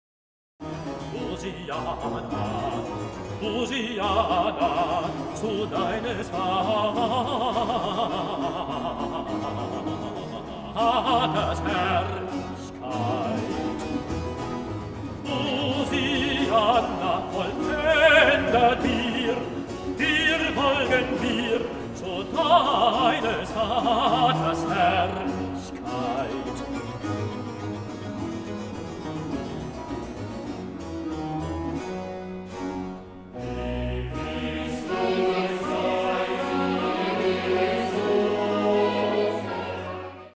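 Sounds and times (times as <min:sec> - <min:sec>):
choral piece: 0:00.6 - 0:40.3.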